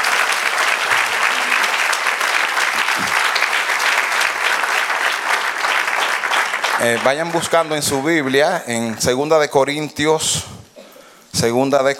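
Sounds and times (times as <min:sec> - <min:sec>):
audience applause: 0:00.0 - 0:09.1
speech: 0:06.8 - 0:10.6, 0:11.4 - 0:11.9.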